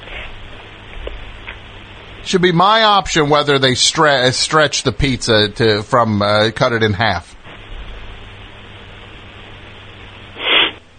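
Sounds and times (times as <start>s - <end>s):
low hiss: 0.0s - 10.9s
speech: 2.2s - 7.4s
person sniffing: 10.4s - 10.8s.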